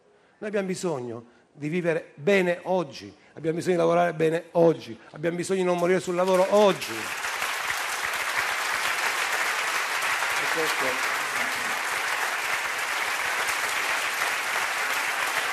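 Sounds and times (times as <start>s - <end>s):
speech: 0.4s - 7.2s, 10.6s - 11.2s
audience applause: 6.2s - 15.5s.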